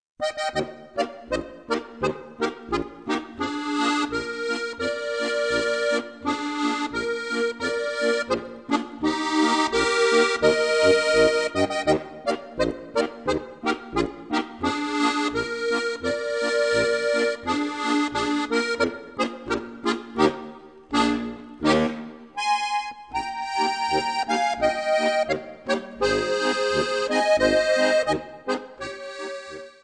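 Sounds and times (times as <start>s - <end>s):
polka music: 0.2s - 29.8s.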